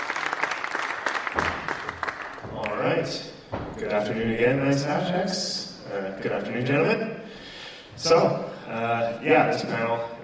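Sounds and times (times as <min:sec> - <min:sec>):
conference audience clapping for a panel: 0:00.0 - 0:03.2
speech: 0:03.0 - 0:07.2, 0:08.0 - 0:10.2.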